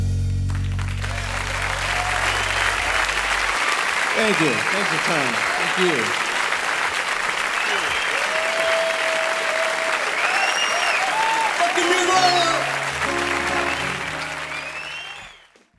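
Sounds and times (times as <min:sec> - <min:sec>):
live concert crowd applause: 0:00.1 - 0:15.7
speech: 0:04.2 - 0:06.3.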